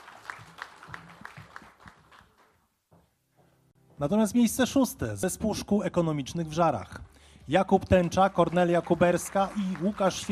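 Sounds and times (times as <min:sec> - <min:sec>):
audience applause: 0:00.0 - 0:02.6, 0:07.6 - 0:10.3
speech: 0:04.0 - 0:10.3.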